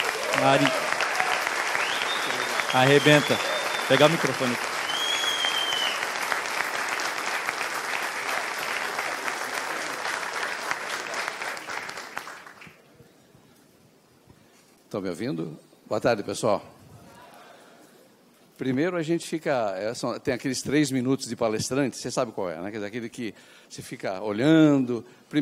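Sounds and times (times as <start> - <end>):
audience applause: 0.0 - 12.8
speech: 0.4 - 0.9, 2.7 - 4.7, 14.9 - 16.8, 18.6 - 25.3.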